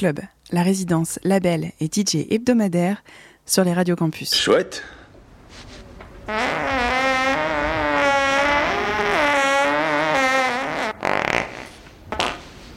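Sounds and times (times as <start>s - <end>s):
speech: 0.0s - 5.0s
long loud fart: 6.3s - 12.5s.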